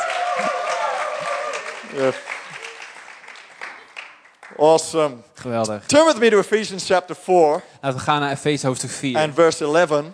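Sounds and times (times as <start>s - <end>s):
church congregation clapping at a bilingual service: 0.0s - 5.0s
speech: 1.9s - 2.4s, 4.6s - 10.1s.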